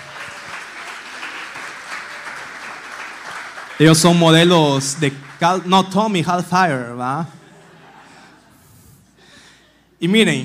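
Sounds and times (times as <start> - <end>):
audience applause for a couple: 0.0 - 5.8
speech: 3.8 - 7.4, 10.0 - 10.4
laughter: 7.3 - 9.2.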